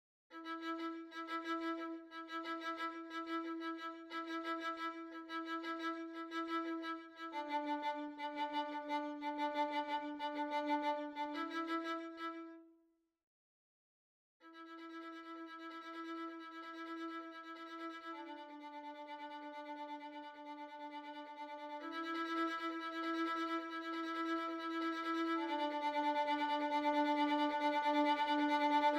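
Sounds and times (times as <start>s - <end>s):
violin: 0.3s - 12.7s, 14.4s - 28.9s.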